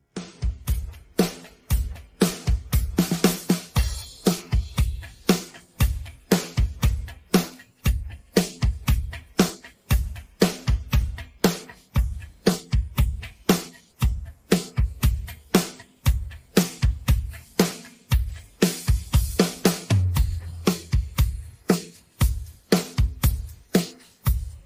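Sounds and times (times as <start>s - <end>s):
drums: 0.0s - 24.6s.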